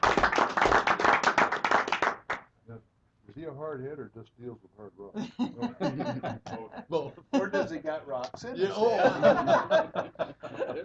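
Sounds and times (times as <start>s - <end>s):
round of applause: 0.0s - 2.5s
speech: 3.4s - 10.8s
laughter: 5.2s - 10.8s.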